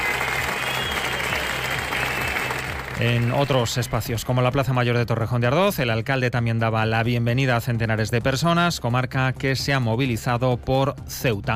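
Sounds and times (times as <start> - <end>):
large crowd applause: 0.0 - 3.9
speech: 3.0 - 11.5.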